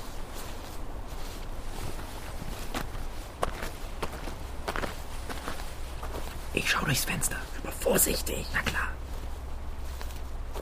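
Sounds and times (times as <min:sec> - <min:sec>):
soft footsteps walking behind a house: 0:00.0 - 0:10.6
speech: 0:06.6 - 0:09.0.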